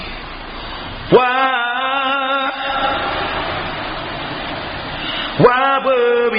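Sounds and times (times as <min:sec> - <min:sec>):
fraternity pledge chant: 0:01.1 - 0:06.2.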